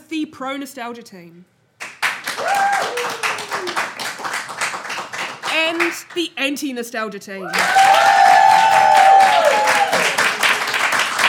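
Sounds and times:
speech: 0.1 - 1.6, 5.6 - 8.1, 8.7 - 9.4
audience clapping: 1.8 - 6.2, 7.5 - 11.2.

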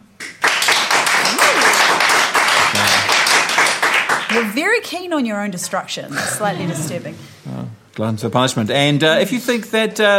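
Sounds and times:
crowd applauding: 0.2 - 4.6
speech: 4.4 - 10.1.

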